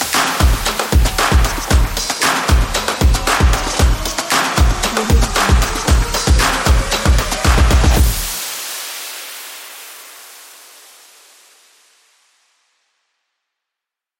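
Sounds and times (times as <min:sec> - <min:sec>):
soccer action drum music: 0:00.0 - 0:08.4.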